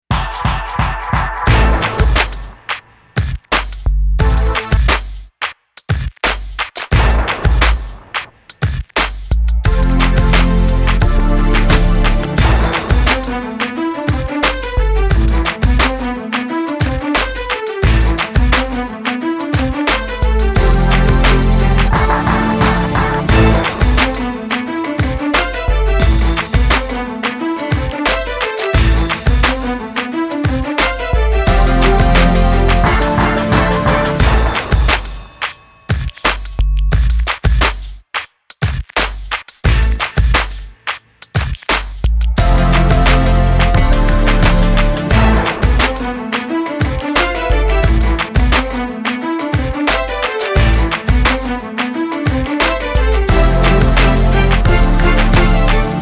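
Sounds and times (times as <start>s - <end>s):
hip hop music: 0.0s - 5.2s, 6.3s - 38.6s, 39.2s - 56.0s.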